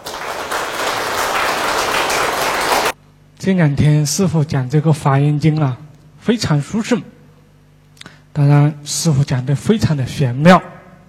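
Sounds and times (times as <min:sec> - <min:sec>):
audience applause: 0:00.0 - 0:03.0
speech: 0:03.4 - 0:07.2, 0:08.4 - 0:10.7.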